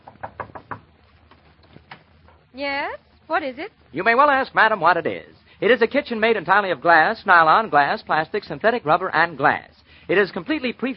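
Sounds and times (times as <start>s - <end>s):
knocking on an old-fashioned kitchen door: 0.0s - 1.0s
speech: 2.6s - 10.9s.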